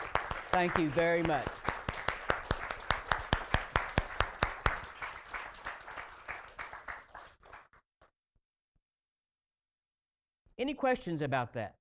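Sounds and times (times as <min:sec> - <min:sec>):
audience applauding: 0:00.0 - 0:07.8
speech: 0:00.5 - 0:01.6, 0:10.6 - 0:11.7.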